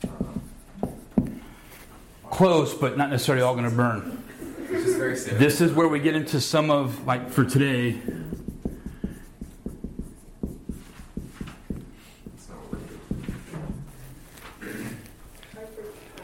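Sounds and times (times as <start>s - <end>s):
writing on a board during a class: 0.0s - 1.6s, 7.9s - 14.4s
speech: 2.4s - 4.2s, 4.8s - 8.2s
laughter: 4.4s - 5.4s.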